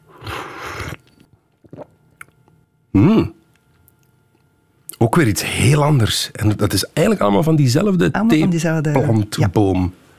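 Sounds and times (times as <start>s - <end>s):
person slurping tea: 0.1s - 1.9s
speech: 5.2s - 10.1s.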